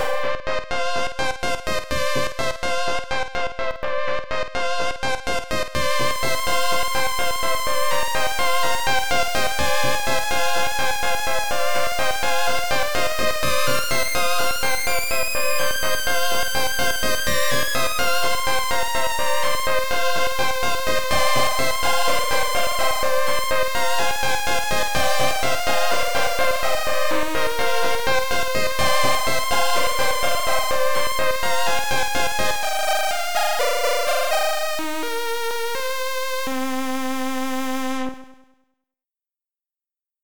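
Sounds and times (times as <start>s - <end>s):
chiptune music: 0.0s - 37.1s.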